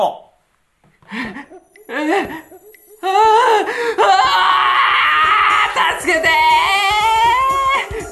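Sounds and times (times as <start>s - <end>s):
speech: 0.0s - 0.2s, 1.1s - 4.6s
performer screaming in agonized wailing in a comedy challenge: 3.0s - 7.9s.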